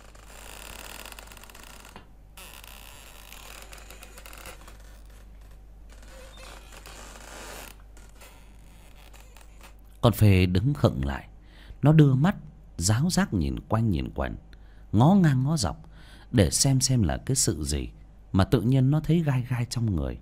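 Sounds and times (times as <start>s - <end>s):
swinging hammock creaking in a bedroom: 0.0s - 9.9s
speech: 10.0s - 20.2s.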